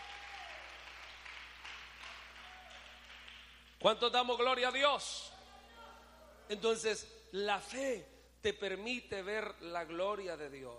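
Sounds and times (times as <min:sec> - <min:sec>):
audience applause: 0:00.0 - 0:03.5
speech: 0:03.8 - 0:05.3, 0:06.5 - 0:10.7.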